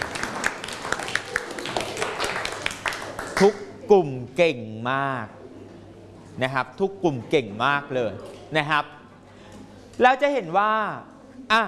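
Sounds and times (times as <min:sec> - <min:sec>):
classroom clapping: 0:00.0 - 0:03.6
speech: 0:03.4 - 0:05.4, 0:06.4 - 0:09.0, 0:10.0 - 0:11.6.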